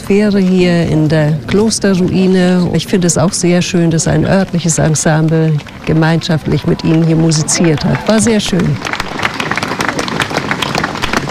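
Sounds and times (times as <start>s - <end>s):
speech: 0.1s - 9.6s
long audience applause: 5.2s - 11.2s.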